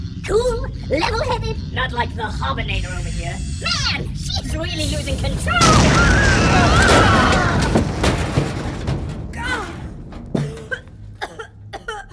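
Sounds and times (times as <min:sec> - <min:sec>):
speech: 0:00.3 - 0:07.6
rigged door exploding: 0:04.7 - 0:11.2.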